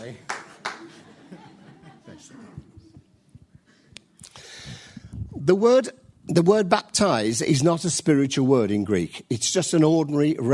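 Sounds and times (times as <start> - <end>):
audience clapping: 0.0 - 1.2
laughter: 0.5 - 2.9
speech: 5.5 - 10.5.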